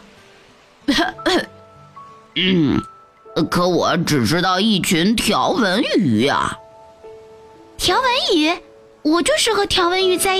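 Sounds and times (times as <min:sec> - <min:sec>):
person imitating a cough: 0:02.4 - 0:02.9
speech: 0:02.4 - 0:06.6, 0:07.8 - 0:10.3.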